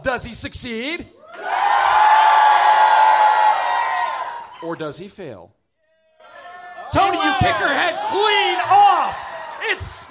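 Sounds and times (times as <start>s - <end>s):
speech: 0.0s - 1.9s, 4.6s - 5.6s, 6.9s - 10.0s
crowd cheering and whooping: 1.2s - 4.6s, 6.2s - 10.0s.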